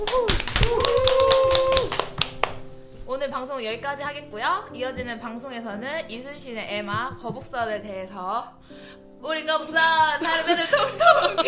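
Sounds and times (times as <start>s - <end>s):
round of applause for the panel: 0.0s - 2.7s
voices whooping and calling out: 0.1s - 1.9s
speech: 3.4s - 11.4s.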